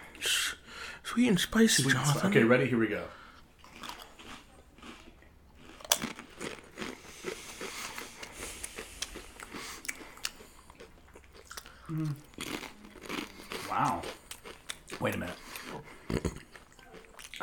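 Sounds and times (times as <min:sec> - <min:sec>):
speech: 0:01.2 - 0:03.2
Pringles potato chips bitten and chewed: 0:03.6 - 0:17.4.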